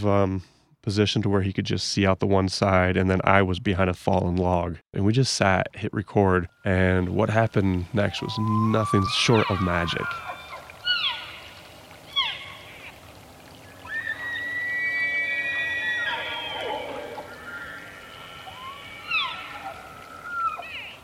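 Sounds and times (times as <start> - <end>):
speech: 0.0 - 10.3
elk approaching in the dark: 5.0 - 21.0.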